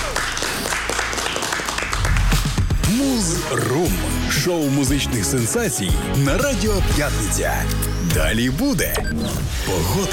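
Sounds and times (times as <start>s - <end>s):
studio audience applause on a radio music show: 0.0s - 2.7s
speech: 3.2s - 10.1s.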